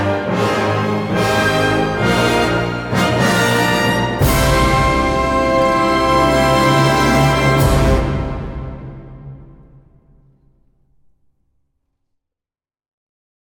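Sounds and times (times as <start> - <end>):
orchestral fantasy main theme: 0.0 - 10.1.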